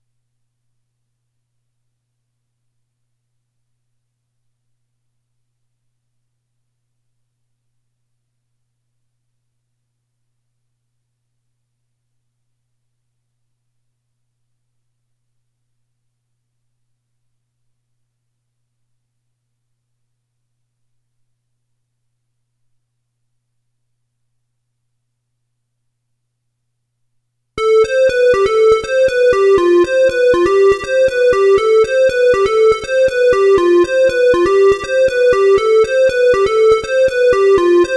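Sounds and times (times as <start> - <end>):
lead melody: 27.6 - 37.9.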